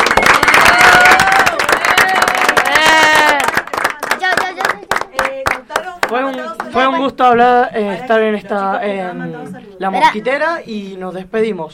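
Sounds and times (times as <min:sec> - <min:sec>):
applause: 0:00.0 - 0:06.9
speech: 0:06.5 - 0:11.7.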